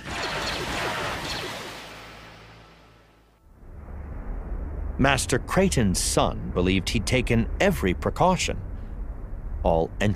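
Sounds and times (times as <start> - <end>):
blaster shots at a ceremony in a sandy courtyard: 0.0 - 3.0
deep low rumble: 3.4 - 10.1
speech: 5.0 - 8.7, 9.6 - 10.1.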